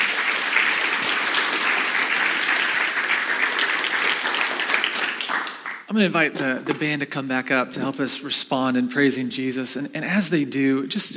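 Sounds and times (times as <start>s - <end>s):
audience applause: 0.0s - 5.9s
speech: 6.0s - 11.1s.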